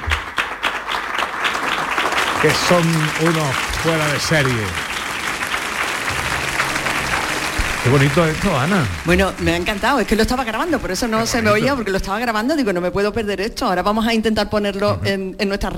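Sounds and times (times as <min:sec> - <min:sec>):
audience applause: 0:00.0 - 0:12.2
speech: 0:02.4 - 0:04.8, 0:07.8 - 0:15.7.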